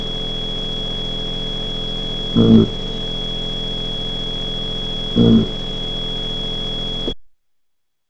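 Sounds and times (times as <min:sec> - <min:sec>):
thumper vibrations: 0:02.3 - 0:03.2, 0:04.9 - 0:05.8.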